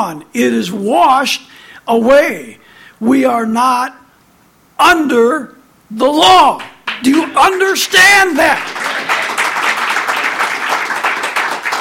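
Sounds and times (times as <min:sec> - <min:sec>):
speech: 0:00.0 - 0:04.0, 0:04.8 - 0:08.8
audience clapping: 0:06.6 - 0:11.7.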